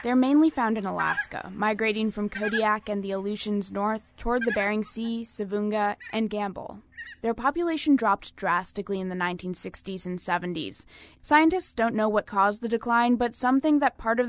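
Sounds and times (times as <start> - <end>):
speech: 0.0 - 14.2
emperor geese cackling honks: 0.8 - 3.0, 4.3 - 5.1.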